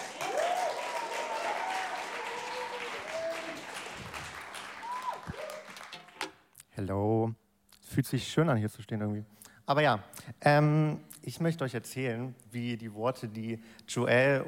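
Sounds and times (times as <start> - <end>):
audience applause: 0.0 - 6.3
speech: 6.8 - 14.4.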